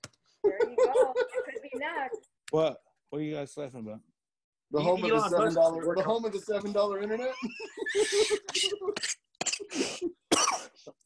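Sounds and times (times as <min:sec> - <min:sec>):
laughter: 0:00.5 - 0:02.2, 0:04.8 - 0:09.0
speech: 0:02.5 - 0:04.1, 0:04.7 - 0:09.2
person coughing and clearing throat irritated by an e-cigarette: 0:08.0 - 0:11.0.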